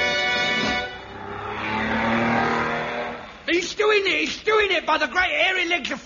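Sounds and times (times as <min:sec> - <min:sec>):
racing car engine revving in a comedy race sound effect: 0:00.2 - 0:03.5
speech: 0:04.2 - 0:06.0.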